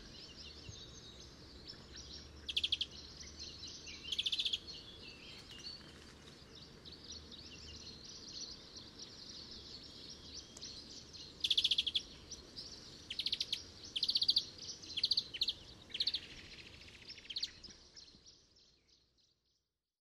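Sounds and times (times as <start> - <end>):
European greenfinch Chloris chloris twittering: 1.7 - 5.8, 9.2 - 18.1.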